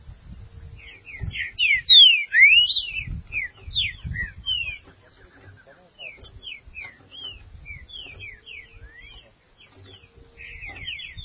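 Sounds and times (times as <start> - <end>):
green-winged saltator singing: 0.8 - 4.9, 5.6 - 9.3, 10.3 - 11.2.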